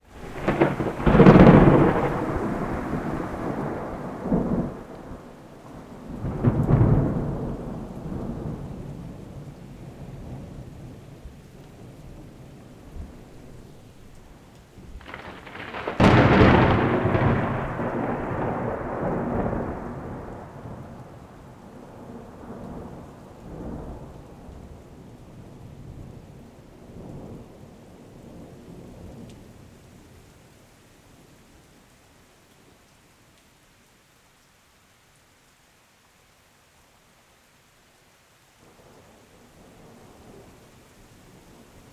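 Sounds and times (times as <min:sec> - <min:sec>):
storm: 0:00.1 - 0:29.7.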